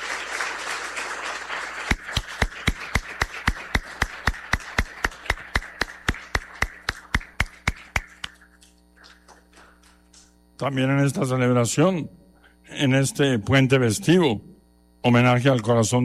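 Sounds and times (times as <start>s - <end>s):
audience applause: 0.0s - 8.4s, 9.0s - 10.0s
speech: 10.6s - 12.2s, 12.8s - 16.0s.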